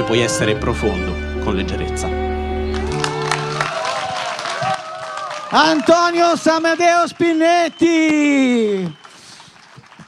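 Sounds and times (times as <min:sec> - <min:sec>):
speech: 0:00.0 - 0:02.2, 0:05.5 - 0:09.0
audience applause after a performance: 0:02.7 - 0:10.0.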